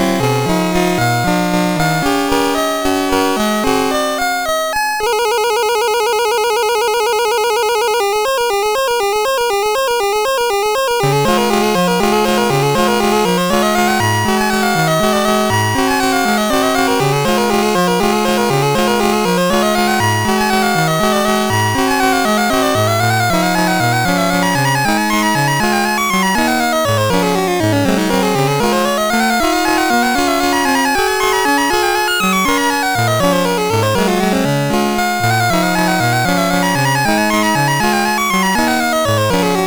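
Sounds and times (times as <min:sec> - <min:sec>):
waltz played on MOS6581R2 SID chip: 0:00.0 - 0:39.6.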